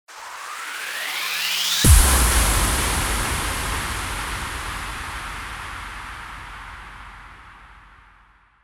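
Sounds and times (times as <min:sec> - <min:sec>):
rising impact: 0:01.8 - 0:08.1.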